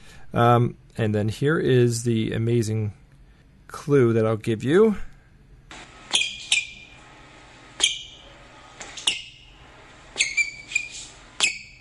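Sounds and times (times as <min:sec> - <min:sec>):
speech: 0:00.3 - 0:03.0, 0:03.7 - 0:05.1
squeaky shoes on a basketball court: 0:06.1 - 0:07.0, 0:07.8 - 0:08.2, 0:08.8 - 0:09.4, 0:10.2 - 0:11.7.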